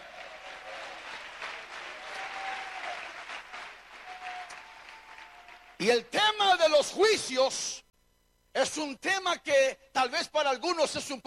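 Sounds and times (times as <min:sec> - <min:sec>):
audience applause: 0:00.0 - 0:05.8
speech: 0:05.8 - 0:07.8, 0:08.6 - 0:11.2.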